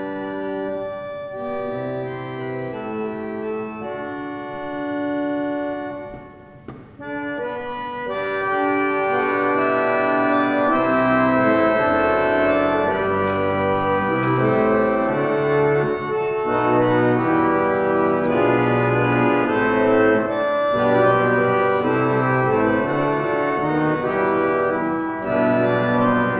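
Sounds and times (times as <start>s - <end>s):
Hinkel compressed-air harmonium: 0.0s - 26.3s.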